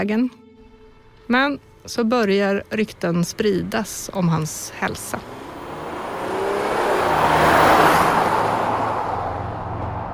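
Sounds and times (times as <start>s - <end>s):
speech: 0.0s - 0.4s, 1.3s - 5.4s
car speeding past to a hospital in Ankara: 3.6s - 10.1s.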